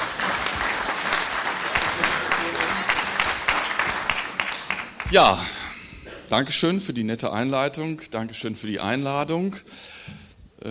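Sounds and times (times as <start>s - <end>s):
audience applause: 0.0s - 5.6s
speech: 5.1s - 5.6s, 6.3s - 10.6s.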